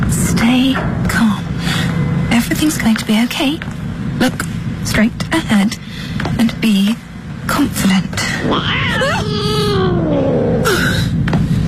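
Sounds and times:
low rumbling background: 0.0 - 11.6
speech: 2.7 - 10.8
cat meowing: 8.4 - 10.6.

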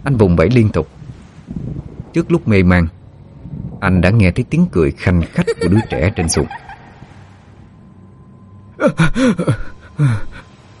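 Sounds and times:
speech: 0.0 - 3.0, 3.8 - 6.6, 8.8 - 10.4
laughter: 5.2 - 6.9
man gasping and crying out: 8.8 - 10.4.

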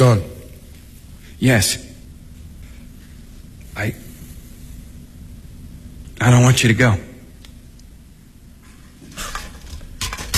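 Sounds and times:
speech: 0.0 - 0.3, 1.4 - 1.9, 3.8 - 4.0, 6.2 - 7.1
cooking pots clattering and scraping as they are handled: 9.1 - 10.3.

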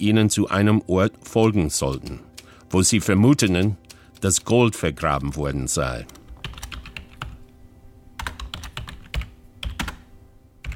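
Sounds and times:
speech: 0.0 - 6.2
typing on a computer keyboard writing a message: 1.4 - 2.6, 3.4 - 4.5, 6.0 - 7.4, 8.2 - 10.7.

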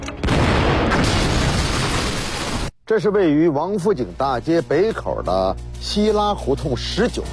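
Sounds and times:
time bomb explosion destroying a house: 0.2 - 2.7
speech: 2.9 - 7.3.

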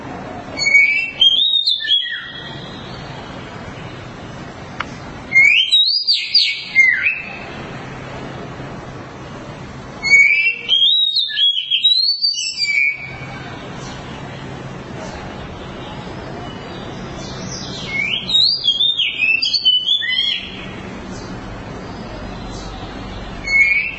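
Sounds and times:
Oriental magpie-robin song: 0.6 - 3.2, 5.3 - 7.5, 10.0 - 14.2, 15.9 - 23.9.

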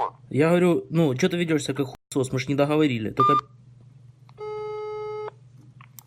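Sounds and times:
speech: 0.3 - 3.6
telephone busy signal after the other caller hangs up: 4.4 - 5.3.

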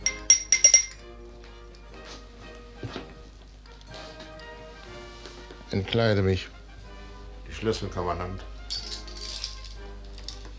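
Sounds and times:
glasses clinking at a castle banquet: 0.0 - 1.2, 8.6 - 10.5
speech: 5.7 - 6.6, 7.6 - 8.5.

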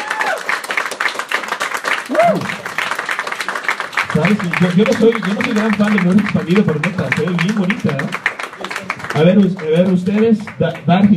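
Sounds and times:
person whooping: 0.0 - 0.5, 2.1 - 2.7
audience applauding: 0.0 - 11.1
speech: 2.1 - 2.6, 4.2 - 8.3, 9.2 - 11.1.

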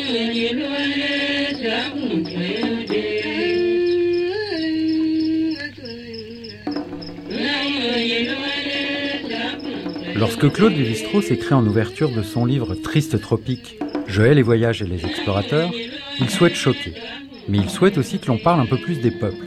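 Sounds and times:
women chanting a funeral chant: 0.0 - 14.1, 14.9 - 19.4
cricket chirping: 0.0 - 19.4
speech: 0.1 - 2.6, 10.2 - 19.4.

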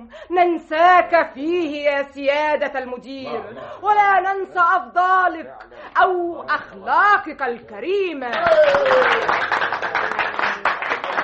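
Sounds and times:
speech: 0.1 - 10.2
audience applause in a radio drama: 8.3 - 11.2.

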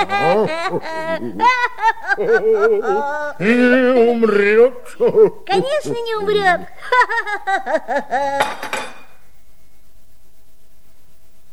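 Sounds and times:
high breathy giggling: 0.0 - 5.5, 6.6 - 8.6
speech: 0.0 - 8.9
cup shattering: 8.4 - 9.2.

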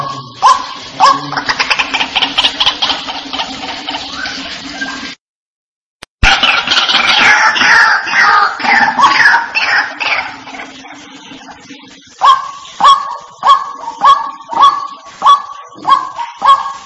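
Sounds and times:
White-breasted waterhen calling: 0.0 - 3.4, 6.5 - 10.9, 12.2 - 16.8.

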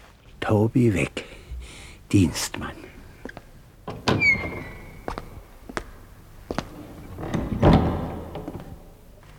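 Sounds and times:
speech: 0.5 - 1.2, 2.1 - 2.8
black door next to a shoe shop creaking open with a high squeal: 3.8 - 5.7, 6.5 - 9.1
black door thudding shut: 7.2 - 8.9.

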